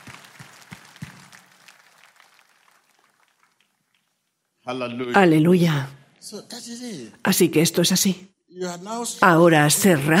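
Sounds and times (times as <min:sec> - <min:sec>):
audience applauding: 0:00.0 - 0:04.4
speech: 0:04.7 - 0:10.1.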